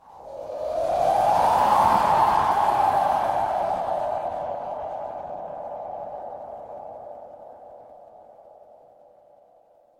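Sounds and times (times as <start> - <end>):
horror wind whisper: 0.0 - 9.8.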